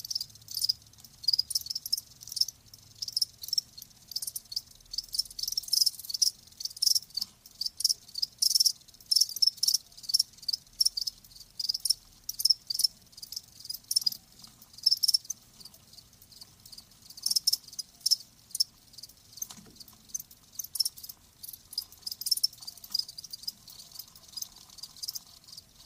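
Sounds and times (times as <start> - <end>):
crickets chirping: 0.0 - 25.8.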